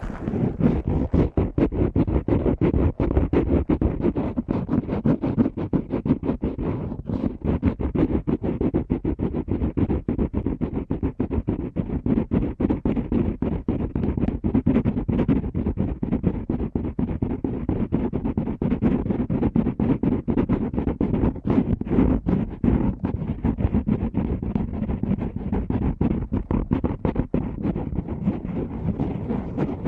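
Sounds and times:
rapid ear cleaning scratching and rubbing: 0.0 - 29.8.

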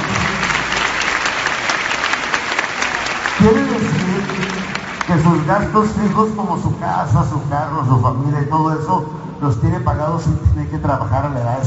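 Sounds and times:
audience applause: 0.0 - 6.4
speech: 3.4 - 3.8, 5.1 - 11.6.

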